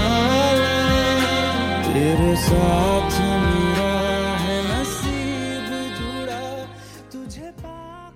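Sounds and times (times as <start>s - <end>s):
solo saxophone: 0.0s - 7.3s.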